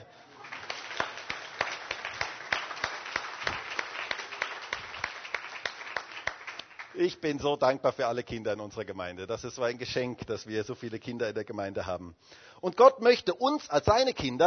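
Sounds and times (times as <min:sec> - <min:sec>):
audience applause for children: 0:00.0 - 0:07.1
speech: 0:07.0 - 0:14.4.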